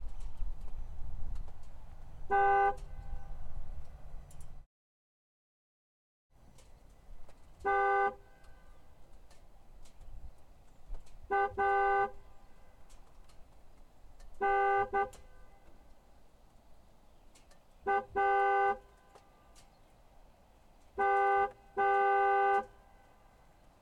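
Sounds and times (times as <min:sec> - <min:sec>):
McLaren 720S car horn: 0:02.3 - 0:03.5, 0:07.5 - 0:09.0, 0:11.3 - 0:13.0, 0:14.3 - 0:15.9, 0:17.8 - 0:19.6, 0:20.9 - 0:23.5.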